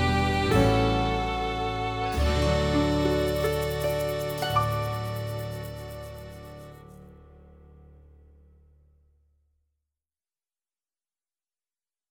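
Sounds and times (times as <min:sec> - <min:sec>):
Christmas backing track: 0:00.0 - 0:07.0.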